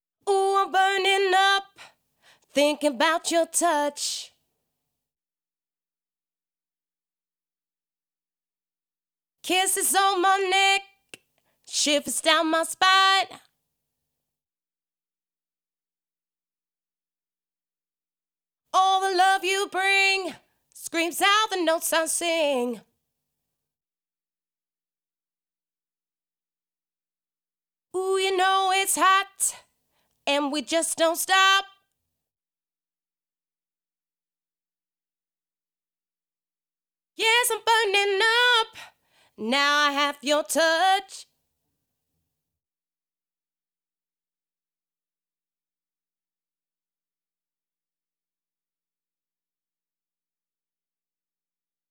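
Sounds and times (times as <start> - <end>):
woman singing a verse in E minor: 0.2 - 4.4, 9.4 - 13.5, 18.8 - 22.9, 28.0 - 29.6, 30.3 - 31.8, 37.2 - 41.3.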